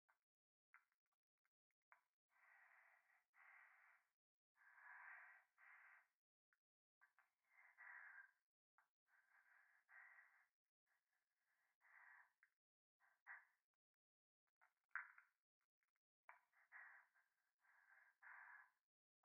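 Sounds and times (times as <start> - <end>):
breathing pressed against the right ear in a bath: 2.3 - 6.2, 7.2 - 8.4, 9.1 - 10.5, 11.5 - 13.5, 16.3 - 18.8.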